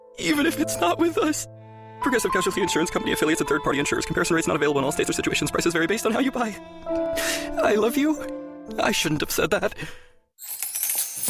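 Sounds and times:
speech: 0.2s - 10.5s
coins dropping and jingling: 10.4s - 11.2s.

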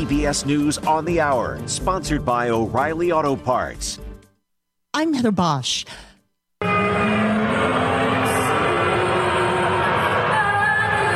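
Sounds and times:
speech: 0.0s - 4.1s, 5.0s - 6.1s
fans booing a national anthem at a basketball game: 6.6s - 11.1s.

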